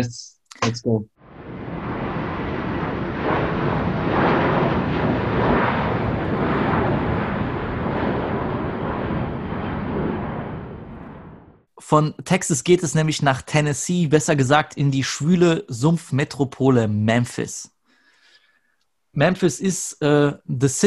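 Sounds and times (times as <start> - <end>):
speech: 0.0 - 1.1, 11.9 - 17.7, 19.2 - 20.8
airplane taking off: 1.2 - 11.7.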